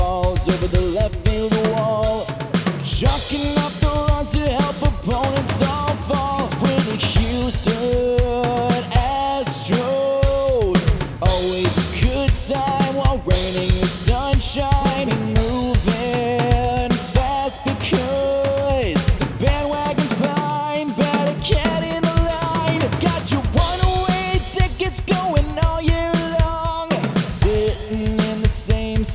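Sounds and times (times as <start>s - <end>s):
rock lead vocals: 0.0s - 29.1s.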